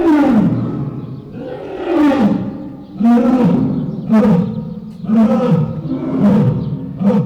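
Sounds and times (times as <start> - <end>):
lions roaring in the lion house at a zoo: 0.0 - 7.1.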